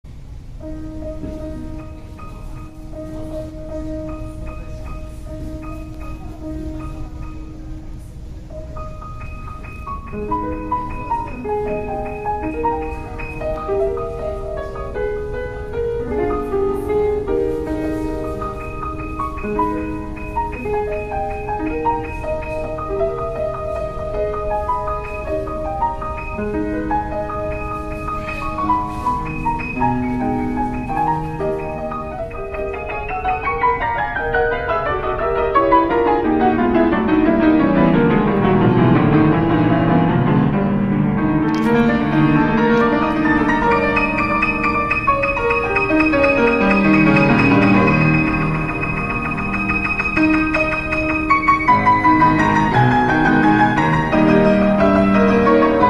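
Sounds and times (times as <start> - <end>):
piano rehearsal in a hall: 0.0 - 55.8.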